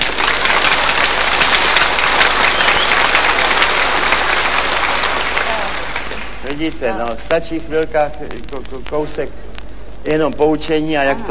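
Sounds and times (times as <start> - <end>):
crowd in frenzied applause: 0.0 - 6.8
speech: 6.6 - 11.3.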